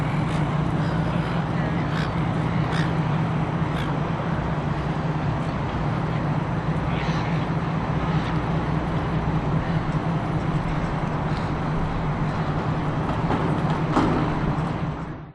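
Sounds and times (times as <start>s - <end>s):
distant city hum at Darling Harbour in Sydney: 0.0s - 15.2s
pedestrians in a public place at Darling Harbour in Sydney: 0.0s - 15.2s
seagulls at Darling Harbour in Sydney: 0.2s - 3.0s, 3.7s - 4.0s.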